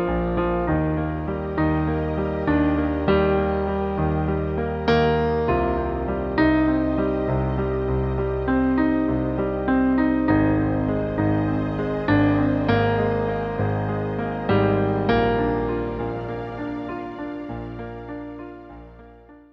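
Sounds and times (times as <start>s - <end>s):
sweet piano music: 0.0s - 19.5s.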